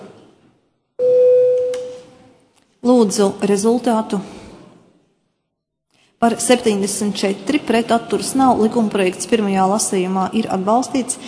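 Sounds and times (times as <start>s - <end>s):
bell rung in parliament to call a vote: 1.0s - 2.0s
speech: 2.8s - 4.4s, 6.2s - 11.2s.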